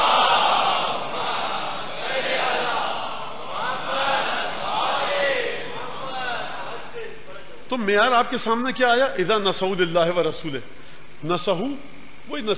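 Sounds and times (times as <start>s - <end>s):
crowd chanting a slogan: 0.0s - 7.6s
speech: 7.7s - 12.5s.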